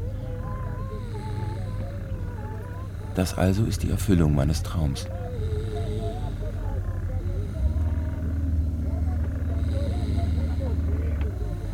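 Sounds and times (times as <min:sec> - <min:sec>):
steady chugging of a motor: 0:00.0 - 0:11.7
speech: 0:03.2 - 0:05.3.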